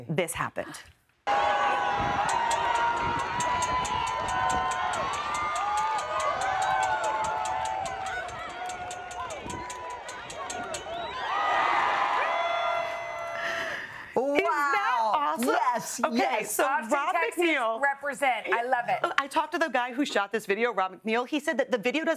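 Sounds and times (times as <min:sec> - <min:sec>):
speech: 0:00.0 - 0:01.4, 0:15.9 - 0:22.1
large crowd cheering at pool: 0:01.2 - 0:15.5
loud high-pitched shrieks and whoops: 0:01.3 - 0:13.8
rhythmic clapping: 0:02.2 - 0:11.2.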